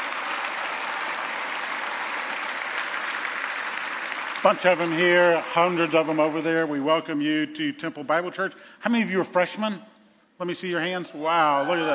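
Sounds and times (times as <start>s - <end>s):
church congregation clapping to welcome college students back: 0.0s - 7.2s
speech: 4.4s - 11.9s.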